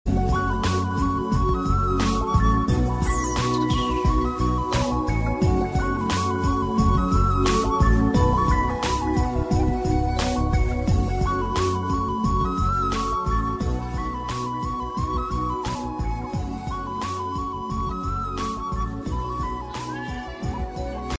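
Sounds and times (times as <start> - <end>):
electronic background music: 0.1 - 21.1.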